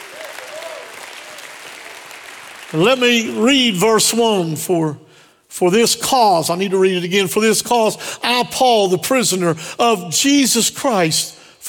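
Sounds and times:
audience applause, hand clapping: 0.0s - 2.8s
speech: 2.7s - 11.6s.

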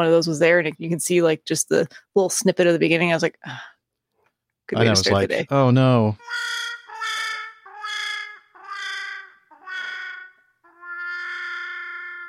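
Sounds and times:
speech: 0.0s - 3.7s, 4.7s - 6.6s
bell sound effect: 6.2s - 12.2s.

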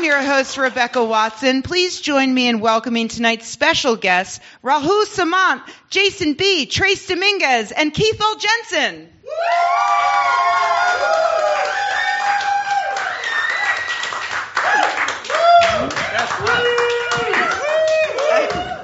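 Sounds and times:
speech: 0.1s - 11.2s
crowd cheering and clapping: 9.3s - 18.8s.

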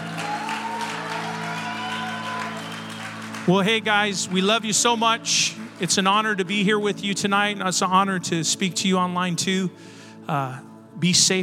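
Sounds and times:
audience applause: 0.0s - 6.6s
speech: 3.4s - 11.4s.

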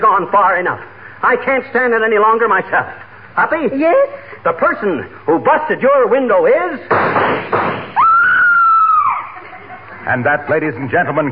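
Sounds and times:
speech: 0.0s - 7.9s, 10.1s - 11.3s
person screaming in a radio drama: 8.0s - 9.3s
laughter: 9.1s - 11.2s.

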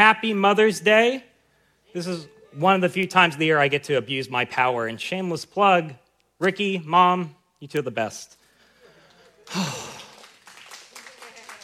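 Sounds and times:
speech: 0.1s - 1.3s, 1.9s - 8.4s, 9.5s - 10.0s
audience applauding: 9.2s - 11.6s.

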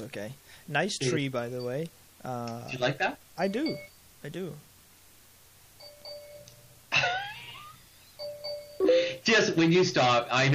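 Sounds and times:
speech: 0.0s - 4.7s, 9.2s - 10.5s
phone notification beeps: 3.4s - 4.0s, 5.8s - 6.5s, 8.2s - 9.0s.

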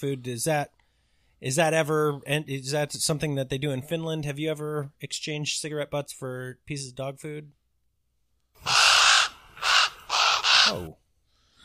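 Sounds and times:
speech: 0.0s - 0.8s, 1.4s - 7.6s, 10.7s - 11.0s
crow cawing loud and raspy: 8.6s - 10.9s.

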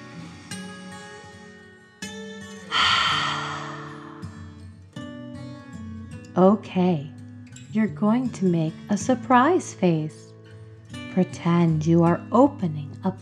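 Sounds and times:
soft gentle music with sustained tones: 0.0s - 13.2s
slow breath in and out during a children's bedtime guided meditation: 2.7s - 4.7s
speech: 6.4s - 10.2s, 11.2s - 13.2s.

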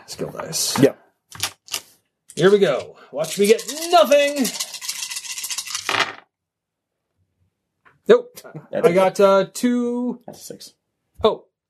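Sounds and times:
speech: 0.1s - 1.4s, 2.4s - 4.7s, 8.1s - 11.5s
dice rattling and clattering: 1.3s - 6.3s.

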